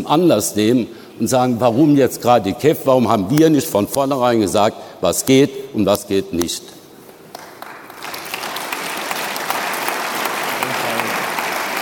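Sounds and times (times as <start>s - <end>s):
speech: 0.0s - 6.8s
audience applause: 7.3s - 11.8s.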